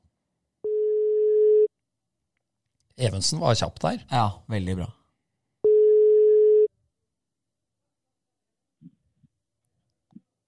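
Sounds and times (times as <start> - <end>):
telephone ringing tone: 0.6 - 1.7, 5.6 - 6.7
speech: 3.0 - 5.0.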